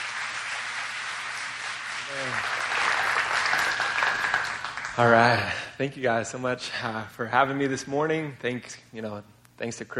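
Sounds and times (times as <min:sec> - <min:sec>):
audience applause welcoming a speaker: 0:00.0 - 0:05.6
speech: 0:05.0 - 0:09.9.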